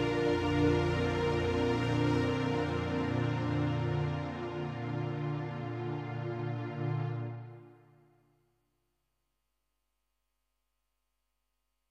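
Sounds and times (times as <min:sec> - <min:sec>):
strings: 0:00.0 - 0:08.0.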